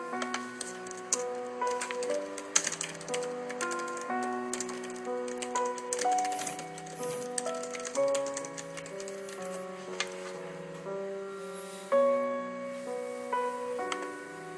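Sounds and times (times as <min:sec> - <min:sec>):
soft piano notes: 0:00.0 - 0:14.5
keyboard typing clicks: 0:00.2 - 0:10.2.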